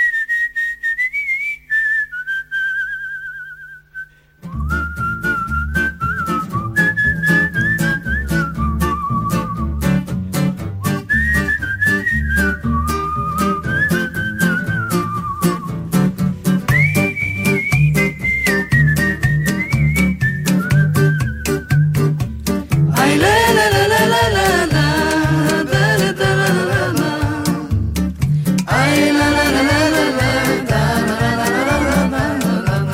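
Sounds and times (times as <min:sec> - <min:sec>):
clear high whistled melody in a Hungarian Gypsy band song: 0:00.0 - 0:22.4, 0:28.6 - 0:32.9
Hungarian Gypsy band with driving percussion and bass: 0:15.8 - 0:32.9.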